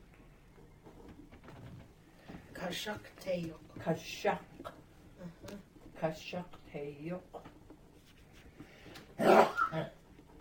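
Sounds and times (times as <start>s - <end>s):
speech: 2.7s - 4.5s, 6.0s - 7.4s
person sneezing: 9.2s - 9.9s.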